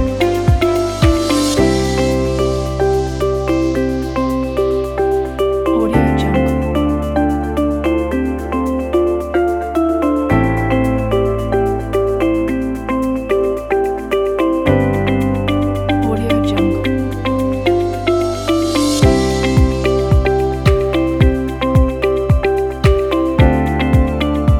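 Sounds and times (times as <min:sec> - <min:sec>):
spring commercial corporate music: 0:00.0 - 0:24.5.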